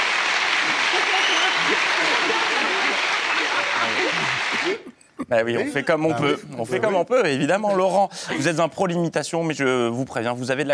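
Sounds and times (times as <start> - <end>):
audience applause: 0.0 - 4.8
laughter: 0.6 - 6.8
speech: 4.6 - 10.7.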